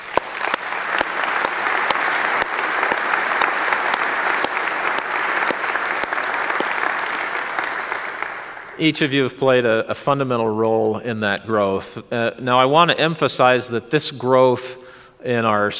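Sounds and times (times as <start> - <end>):
audience applause: 0.0 - 8.8
speech: 8.8 - 15.7.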